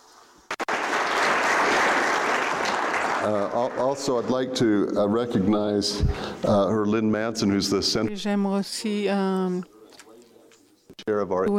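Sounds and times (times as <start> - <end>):
applause: 0.5 - 4.5
speech: 3.2 - 9.8, 11.1 - 11.5.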